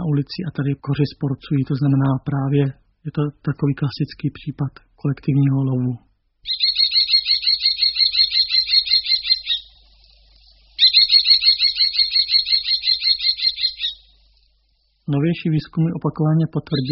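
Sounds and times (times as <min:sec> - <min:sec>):
speech: 0:00.1 - 0:06.7, 0:15.1 - 0:16.9
common kestrel calling: 0:06.4 - 0:14.6, 0:15.4 - 0:16.9.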